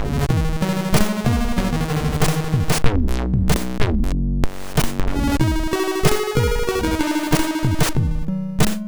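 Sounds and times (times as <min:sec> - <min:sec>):
chiptune loader music on a sound chip: 0:00.0 - 0:08.8.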